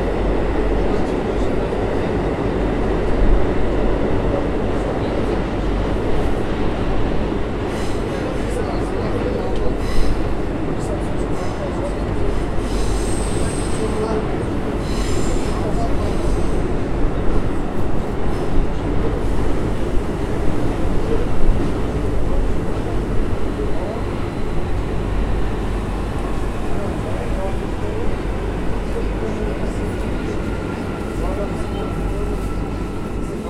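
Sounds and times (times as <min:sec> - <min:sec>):
subway train: 0:00.0 - 0:33.4.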